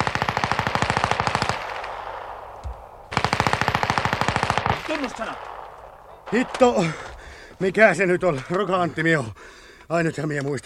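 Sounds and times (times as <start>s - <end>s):
automatic gunfire: 0.0s - 7.0s
speech: 5.0s - 5.5s, 6.3s - 10.6s.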